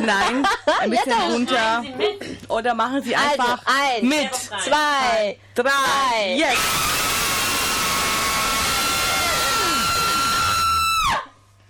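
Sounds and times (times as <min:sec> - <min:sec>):
speech: 0:00.0 - 0:06.9
group of performers screaming loudly: 0:06.5 - 0:11.4.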